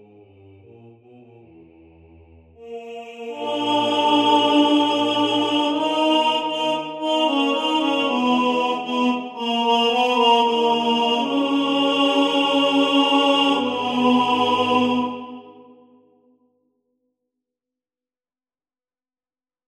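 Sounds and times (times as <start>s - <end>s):
male choir singing: 0.0s - 15.9s
tenor singing in the foreground: 2.6s - 15.9s.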